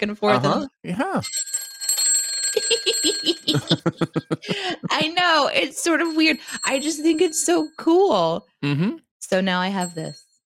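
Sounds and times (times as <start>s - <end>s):
speech: 0.0s - 1.7s, 2.5s - 10.2s
old-fashioned clock bell ringing: 1.2s - 4.1s, 5.0s - 8.4s, 9.8s - 10.3s
laughter: 2.8s - 5.9s.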